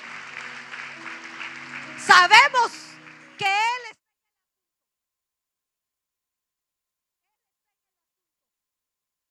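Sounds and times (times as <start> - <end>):
audience applauding loudly: 0.0 - 3.8
speech: 2.1 - 2.8, 3.4 - 3.8.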